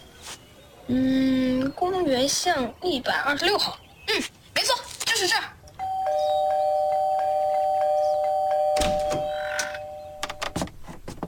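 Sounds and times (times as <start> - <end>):
speech: 0.9 - 4.3
doorbell being pressed repeatedly: 5.8 - 10.5.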